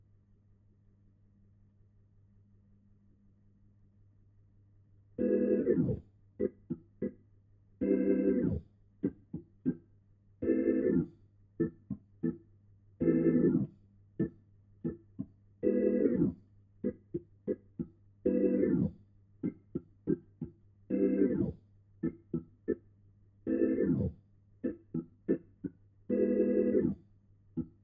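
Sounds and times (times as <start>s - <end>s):
Hammond organ: 5.2s - 7.2s, 7.8s - 9.8s, 10.4s - 22.8s, 23.4s - 27.0s.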